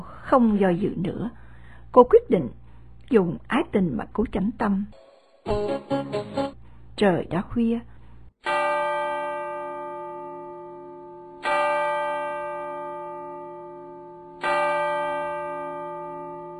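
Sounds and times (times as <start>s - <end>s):
speech: 0.3s - 8.6s
clock chiming with bell-like strikes: 8.4s - 16.5s.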